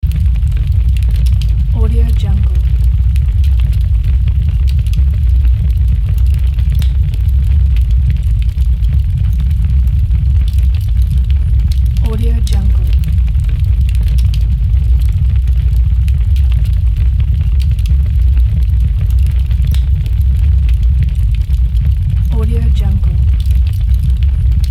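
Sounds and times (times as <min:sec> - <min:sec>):
large dark fire burning: 0:00.0 - 0:24.6.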